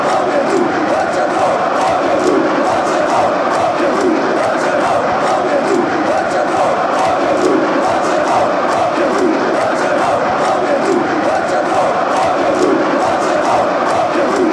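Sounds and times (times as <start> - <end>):
people chanting in Croatia: 0.0 - 14.5.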